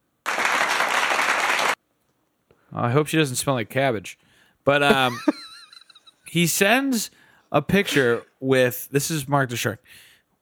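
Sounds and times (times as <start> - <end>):
applause sound effect from soundboard button: 0.2 - 1.8
speech: 2.7 - 5.4, 6.3 - 10.1
laughter: 4.8 - 6.0.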